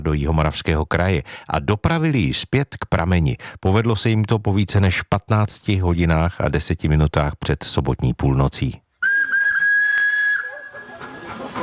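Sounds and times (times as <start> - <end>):
speech: 0.0 - 8.8
old Smekal steam fire pump hissing and whistling: 9.0 - 11.6.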